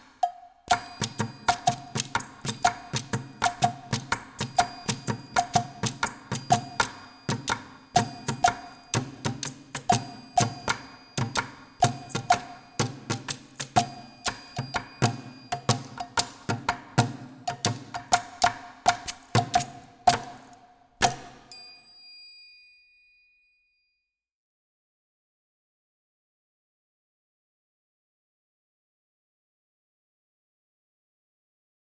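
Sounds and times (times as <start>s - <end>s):
student percussion playing fast: 0.0s - 21.9s.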